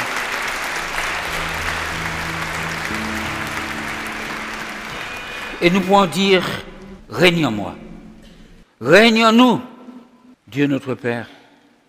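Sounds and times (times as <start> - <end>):
audience applause: 0.0 - 8.3
sustained low keyboard or organ notes: 0.0 - 8.6
speech: 5.6 - 7.8, 8.8 - 9.7, 10.5 - 11.4.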